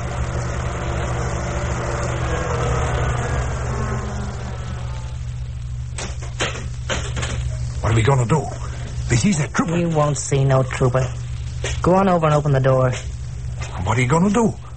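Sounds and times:
car engine idling: 0:00.0 - 0:11.6
speech: 0:08.0 - 0:11.2, 0:11.8 - 0:13.1, 0:13.9 - 0:14.6.

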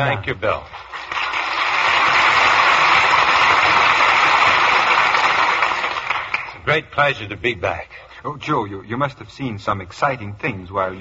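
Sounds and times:
speech: 0:00.0 - 0:01.2, 0:06.6 - 0:10.9
studio audience applause: 0:00.8 - 0:06.6.

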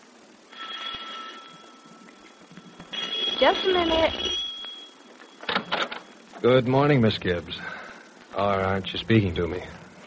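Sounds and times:
doorbell ringing: 0:00.5 - 0:06.2
speech: 0:03.4 - 0:04.4, 0:06.4 - 0:07.8, 0:08.4 - 0:09.8.

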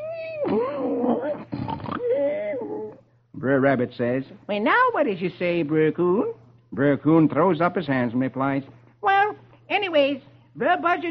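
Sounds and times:
voice imitating loud snoring: 0:00.3 - 0:03.0
speech: 0:03.4 - 0:08.8, 0:09.7 - 0:11.0.

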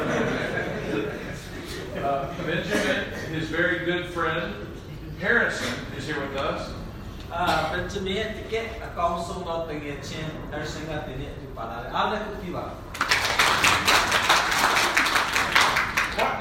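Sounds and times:
laughter: 0:00.0 - 0:03.4
speech: 0:02.1 - 0:12.9
clapping of many hands: 0:12.9 - 0:16.3.

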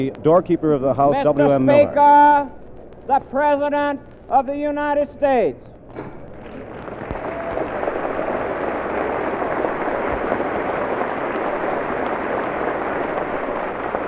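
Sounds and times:
speech: 0:00.0 - 0:05.7
large crowd applauding: 0:06.2 - 0:14.0.

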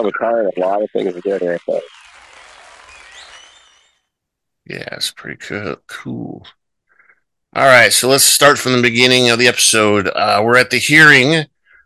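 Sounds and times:
speech: 0:00.0 - 0:02.0, 0:04.7 - 0:06.6, 0:07.5 - 0:11.5
crowd applause: 0:00.0 - 0:03.8
faint high whistles: 0:02.9 - 0:04.0.

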